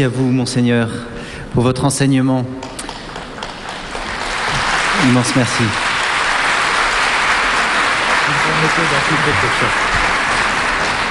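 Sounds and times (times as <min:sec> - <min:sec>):
speech: 0:00.0 - 0:02.8, 0:05.0 - 0:05.9, 0:08.7 - 0:10.0
audience applause: 0:02.8 - 0:11.0.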